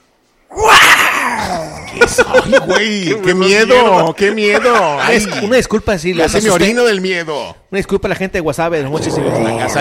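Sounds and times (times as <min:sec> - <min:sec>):
person imitating a tiger roar: 0:00.5 - 0:01.9
laughter: 0:01.8 - 0:05.6
speech: 0:02.0 - 0:09.8.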